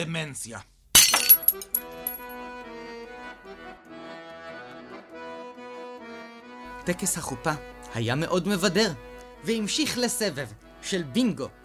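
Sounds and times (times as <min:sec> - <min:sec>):
speech: 0:00.0 - 0:00.7, 0:01.5 - 0:02.3, 0:06.9 - 0:11.6
glass being smashed underfoot: 0:01.0 - 0:02.2.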